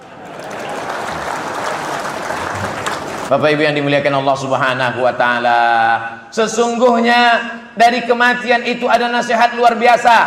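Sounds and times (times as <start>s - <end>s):
audience clapping at a religious gathering: 0.0s - 3.3s
speech: 3.3s - 10.2s.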